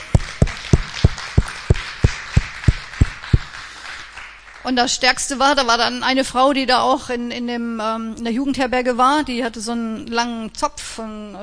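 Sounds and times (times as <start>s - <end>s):
audience applause: 0.0s - 4.6s
speech: 4.7s - 11.4s.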